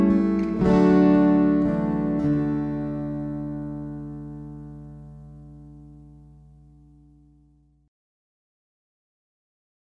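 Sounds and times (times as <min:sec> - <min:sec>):
waltz music: 0:00.0 - 0:05.6.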